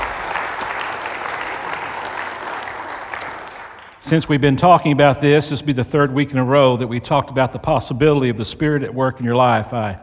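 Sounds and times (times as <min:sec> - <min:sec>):
crowd clapping: 0:00.0 - 0:04.4
speech: 0:04.0 - 0:10.0.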